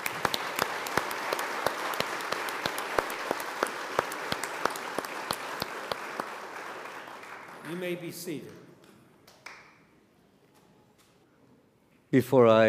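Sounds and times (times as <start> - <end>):
crowd applause: 0.0 - 8.2
speech: 7.7 - 8.6, 12.1 - 12.6.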